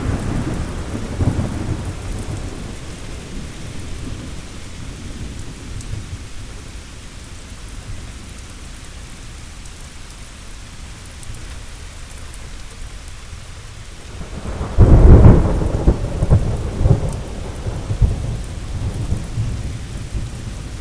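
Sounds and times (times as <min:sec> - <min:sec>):
thunderstorm: 0:00.0 - 0:06.7, 0:14.1 - 0:20.8.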